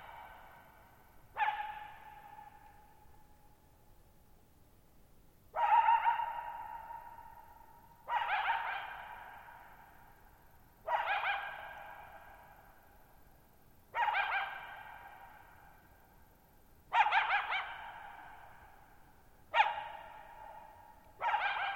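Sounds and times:
coyote barking and yipping: 1.4 - 2.7, 5.6 - 7.3, 8.0 - 9.6, 10.9 - 12.4, 14.0 - 15.5, 16.9 - 18.8, 19.5 - 21.7.

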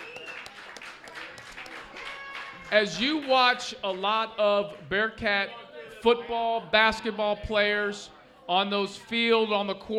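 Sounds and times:
audience round of applause: 0.0 - 3.4
speech: 2.7 - 9.9.

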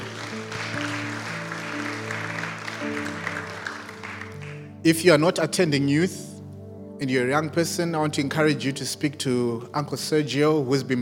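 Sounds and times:
audience applauding: 0.0 - 4.8
speech: 4.8 - 6.3, 7.0 - 11.0.

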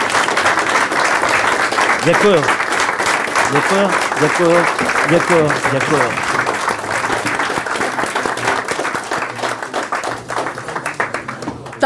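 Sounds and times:
audience applause: 0.0 - 11.8
speech: 2.0 - 2.6, 3.5 - 6.4.

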